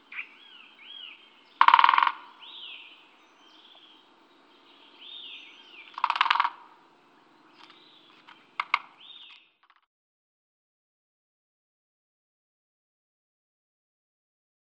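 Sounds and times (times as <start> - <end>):
great spotted woodpecker sharp call notes: 0.0 - 9.6.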